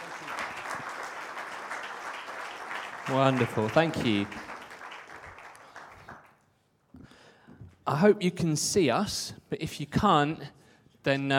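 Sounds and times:
audience applause: 0:00.0 - 0:06.4
speech: 0:03.1 - 0:04.5, 0:07.9 - 0:11.3.

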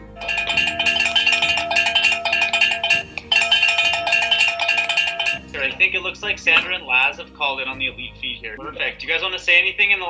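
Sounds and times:
bell rung to start lap: 0:00.0 - 0:07.2
speech: 0:05.8 - 0:10.0.

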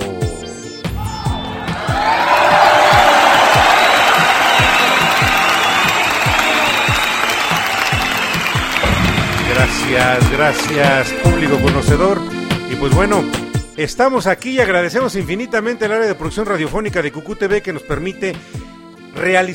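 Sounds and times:
audience applause: 0:01.6 - 0:12.0
speech: 0:10.1 - 0:19.5.

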